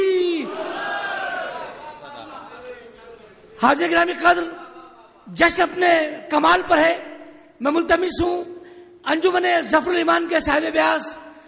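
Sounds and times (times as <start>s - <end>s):
crowd at a religious celebration shouting in answer to a slogan: 0.0s - 1.8s
speech: 3.6s - 4.6s, 5.3s - 11.2s.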